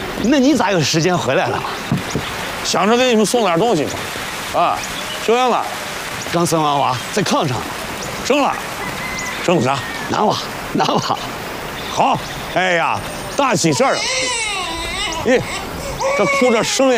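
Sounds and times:
adults talking: 0:00.2 - 0:16.9
newborn baby boy crying loudly: 0:13.5 - 0:16.9.

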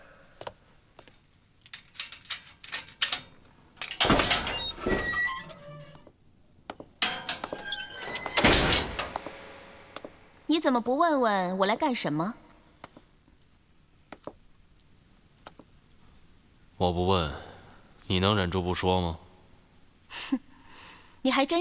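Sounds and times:
door opening: 0:01.7 - 0:06.1, 0:07.0 - 0:10.2
speech: 0:10.6 - 0:12.4, 0:16.8 - 0:17.4, 0:18.1 - 0:19.2, 0:21.2 - 0:21.5.

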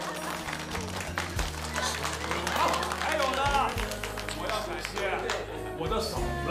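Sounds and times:
guests clapping: 0:00.0 - 0:05.8
speech: 0:04.8 - 0:06.4.

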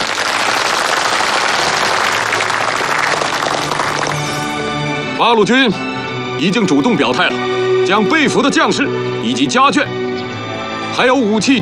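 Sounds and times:
audience applause approving an agreement: 0:00.0 - 0:04.9
speech: 0:05.2 - 0:10.0, 0:11.0 - 0:11.6.

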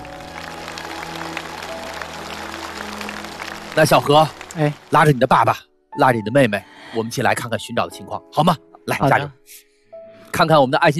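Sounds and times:
audience applause: 0:00.0 - 0:05.5
speech: 0:03.8 - 0:09.7, 0:10.3 - 0:10.9.

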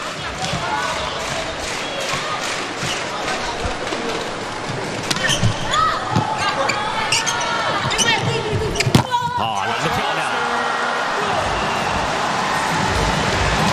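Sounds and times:
steady crowd noise at a volleyball match: 0:00.0 - 0:13.7
commentators talking: 0:00.1 - 0:10.7
volleyball struck on a serve from the back row: 0:00.3 - 0:09.4.

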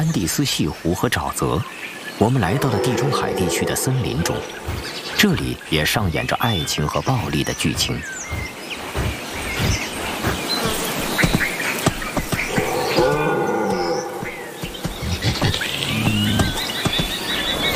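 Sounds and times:
speech: 0:00.0 - 0:08.5
faint chirps: 0:02.2 - 0:17.7
red deer bellowing: 0:02.4 - 0:05.2, 0:12.5 - 0:16.6.

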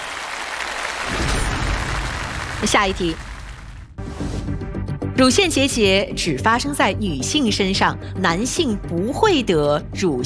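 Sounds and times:
audience applause on a health quiz show after a correct answer: 0:00.0 - 0:03.8
speech: 0:02.6 - 0:03.3, 0:05.2 - 0:10.2.

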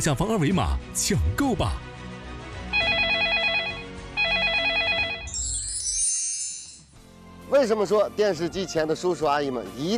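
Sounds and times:
speech: 0:00.0 - 0:01.9, 0:07.5 - 0:09.9
telephone ringing: 0:02.8 - 0:05.4.

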